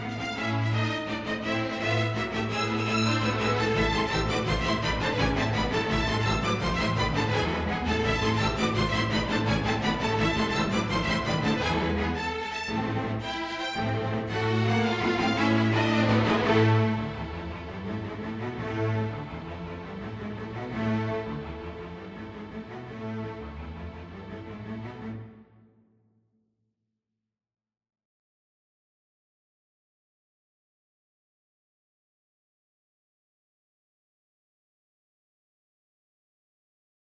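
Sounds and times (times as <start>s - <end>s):
string orchestra playing a scherzo in A minor: 0.0s - 25.5s.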